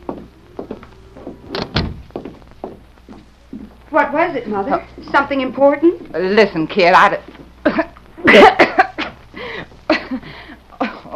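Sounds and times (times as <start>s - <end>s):
speech: 3.9s - 8.7s
woman coughing: 7.6s - 9.0s.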